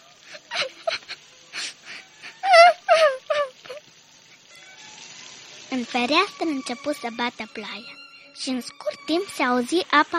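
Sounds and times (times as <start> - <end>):
girl crying: 0.2 - 3.8
speech: 5.7 - 10.1.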